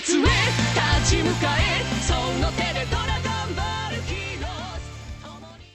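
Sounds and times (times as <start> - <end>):
music loop: 0.2 - 4.8.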